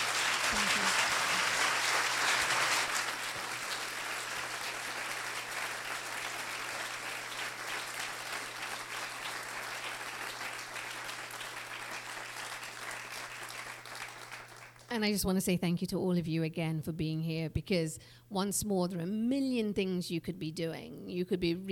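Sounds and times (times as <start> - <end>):
audience applause: 0.0 - 14.9
speech: 15.0 - 21.7.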